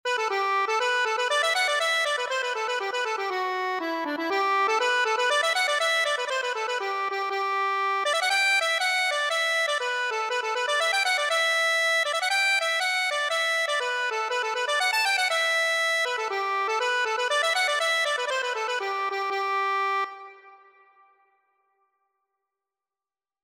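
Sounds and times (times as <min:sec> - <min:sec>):
accordion: 0:00.0 - 0:21.1.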